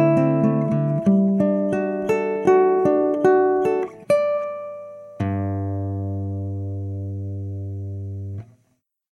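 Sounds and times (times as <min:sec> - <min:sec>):
nylon string guitar with Fishman pickup: 0:00.0 - 0:08.8.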